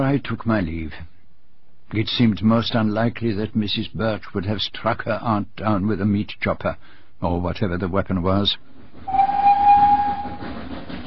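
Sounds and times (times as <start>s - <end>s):
speech: 0.0s - 1.1s, 1.9s - 9.2s
train rumbling along the tracks: 8.6s - 11.0s
long steady train whistle: 9.1s - 10.7s.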